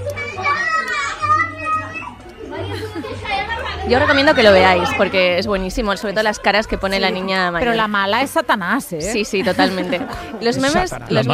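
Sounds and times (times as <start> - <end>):
children screaming: 0.0 - 5.5
laughter: 2.1 - 5.3, 9.0 - 11.3
speech: 3.8 - 11.3.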